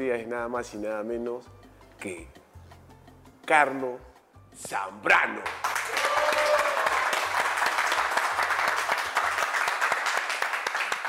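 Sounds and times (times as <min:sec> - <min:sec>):
speech: 0:00.0 - 0:02.4, 0:03.5 - 0:05.7
audience applause: 0:05.6 - 0:11.0.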